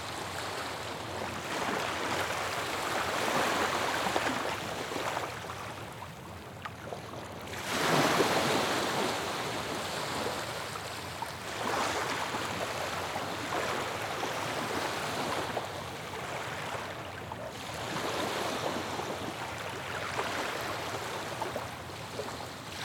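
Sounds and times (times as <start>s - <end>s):
calm waves on a sandy coast: 0.0s - 22.8s.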